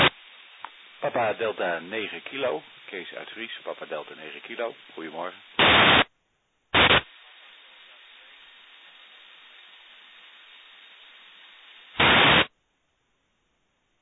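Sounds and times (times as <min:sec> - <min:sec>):
loud bursts of noise on an empty radio carrier signal: 0:00.0 - 0:01.0, 0:03.9 - 0:06.1, 0:06.7 - 0:09.6, 0:11.7 - 0:12.5
static on an empty radio carrier signal: 0:00.0 - 0:12.6
speech: 0:01.0 - 0:06.0.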